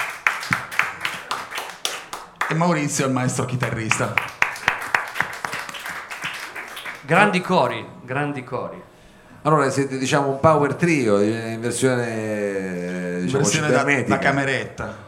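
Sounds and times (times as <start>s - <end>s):
audience applause: 0.0s - 7.8s
speech: 2.5s - 4.4s, 7.1s - 15.0s.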